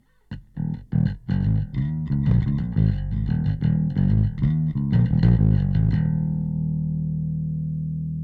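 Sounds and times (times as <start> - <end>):
E bass: 0.3 - 8.2.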